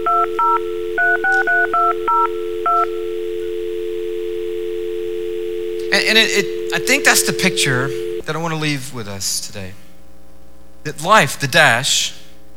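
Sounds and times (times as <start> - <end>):
telephone touch-tone dialing beeps: 0.0 - 8.2
speech: 5.9 - 9.8, 10.8 - 12.2.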